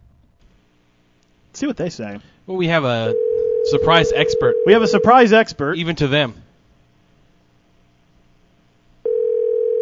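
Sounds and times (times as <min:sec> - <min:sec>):
speech: 0:01.6 - 0:06.4
telephone line tone as a call is placed: 0:03.1 - 0:05.2, 0:09.1 - 0:09.8.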